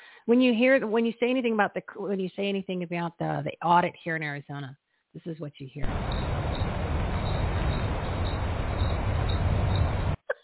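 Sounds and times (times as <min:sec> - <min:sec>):
speech: 0:00.3 - 0:06.2
crickets chirping: 0:05.8 - 0:10.2.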